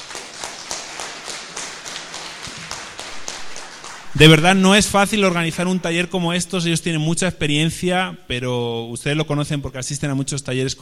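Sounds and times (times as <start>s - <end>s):
crowd applause: 0.0s - 4.4s
speech: 4.2s - 10.8s.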